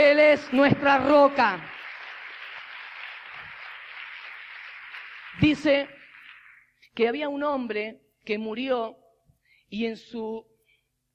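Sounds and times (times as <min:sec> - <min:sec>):
audience applause: 0:00.0 - 0:06.7
speech: 0:00.2 - 0:01.7, 0:05.4 - 0:06.0, 0:07.0 - 0:09.0, 0:09.7 - 0:10.5.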